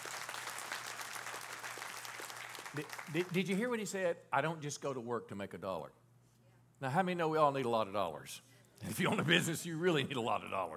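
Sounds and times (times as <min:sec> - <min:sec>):
crowd clapping: 0:00.0 - 0:03.8
speech: 0:02.8 - 0:06.0, 0:06.8 - 0:10.7.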